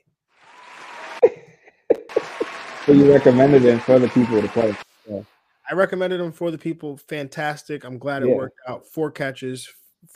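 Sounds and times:
applause: 0.4s - 1.3s, 1.9s - 4.8s
speech: 2.9s - 10.1s.

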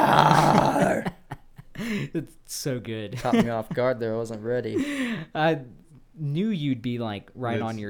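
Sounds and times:
person imitating a bear-like monster roaring: 0.0s - 1.1s
speech: 2.1s - 7.8s.

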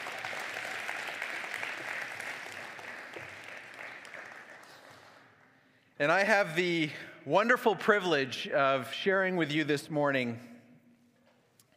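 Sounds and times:
audience applause: 0.0s - 5.3s
speech: 6.0s - 10.5s.

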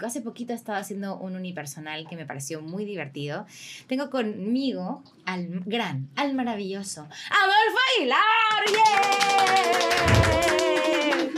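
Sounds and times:
speech: 0.0s - 10.7s
one person clapping: 8.6s - 11.3s.

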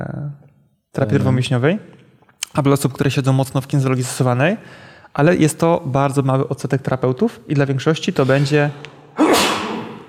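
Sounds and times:
speech: 1.0s - 9.4s
person sneezing: 9.2s - 10.0s.

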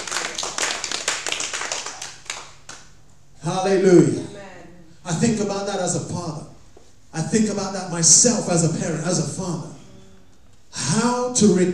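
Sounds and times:
crowd clapping: 0.0s - 3.0s
speech: 3.4s - 4.3s, 5.1s - 6.5s, 7.2s - 9.7s, 11.4s - 11.7s.

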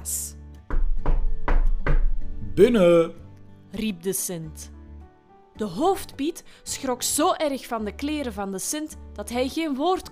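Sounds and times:
knocking on a door: 0.7s - 2.2s
speech: 2.6s - 4.8s, 5.6s - 10.1s.

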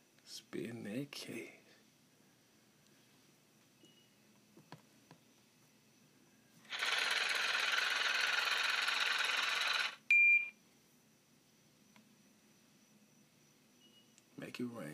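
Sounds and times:
speech: 0.3s - 1.6s, 14.6s - 14.9s
money counting machine whirring: 6.7s - 10.0s.

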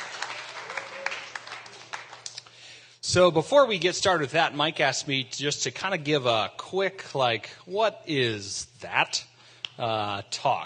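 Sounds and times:
audience clapping: 0.0s - 2.6s
speech: 3.1s - 10.6s.

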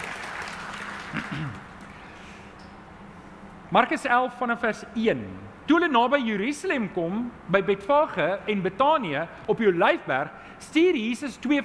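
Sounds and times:
audience applause: 0.0s - 2.0s
speech: 1.4s - 1.7s, 3.7s - 11.6s.

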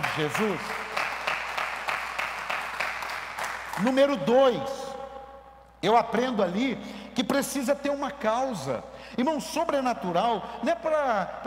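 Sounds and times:
audience applause: 0.0s - 3.8s
speech: 0.2s - 0.8s, 3.8s - 4.8s, 5.8s - 11.4s.

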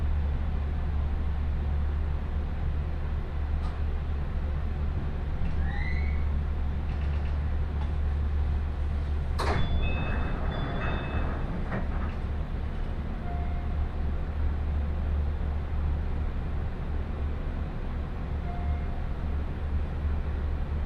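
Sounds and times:
train on the Chuo West Line rumbling: 0.0s - 20.8s
sharp clank and rattling: 9.4s - 12.4s.

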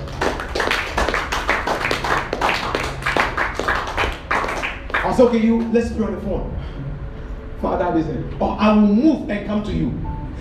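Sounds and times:
hands clapping: 0.0s - 5.7s
speech: 5.1s - 6.9s, 7.6s - 10.1s.

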